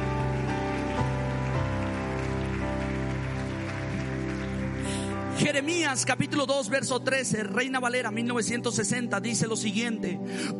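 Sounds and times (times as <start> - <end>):
crowd applause: 0.0 - 5.4
sustained music chords: 0.0 - 5.4
speech: 5.4 - 10.5.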